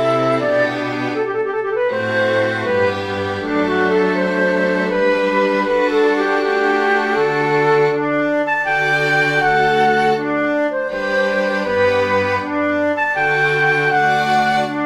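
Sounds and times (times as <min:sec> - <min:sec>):
sonata in a major key for flute and strings: 0:00.0 - 0:14.8.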